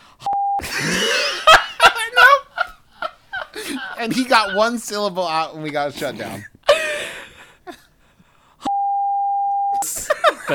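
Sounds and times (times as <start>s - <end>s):
censor beep over a spoken word: 0.2s - 0.6s, 8.7s - 9.8s
laughter: 0.6s - 5.8s, 6.7s - 7.9s, 9.8s - 10.5s
speech: 4.0s - 6.5s.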